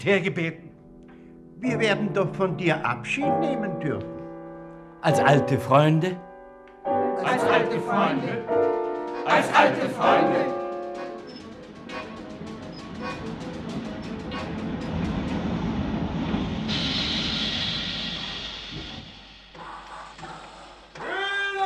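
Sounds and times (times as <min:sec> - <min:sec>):
speech: 0:00.0 - 0:00.7, 0:01.6 - 0:04.1, 0:05.0 - 0:10.6
train rumbling: 0:07.3 - 0:21.5.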